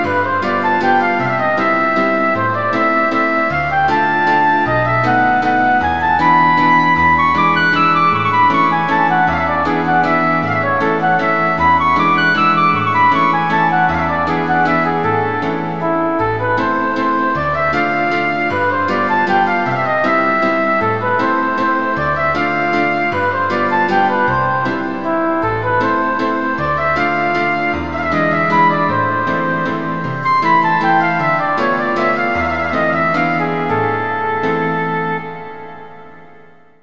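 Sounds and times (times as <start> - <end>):
flute playing a waltz in A minor: 0.0 - 36.8
piano playing a waltz in A minor: 0.0 - 36.8.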